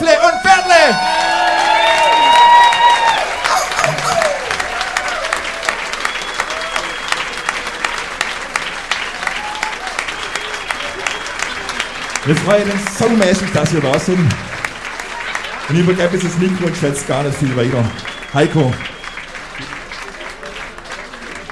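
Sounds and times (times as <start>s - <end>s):
enthusiastic audience applause: 0.0s - 21.4s
whoops and cheering voices: 0.1s - 7.8s, 9.0s - 11.2s
speech: 12.3s - 14.5s, 15.7s - 18.9s.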